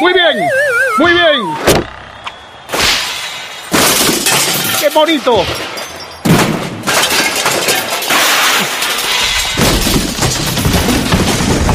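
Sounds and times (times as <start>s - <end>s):
speech: 0.0s - 1.7s, 5.0s - 5.7s
hammer smashing the Olympic cauldron: 2.7s - 11.7s.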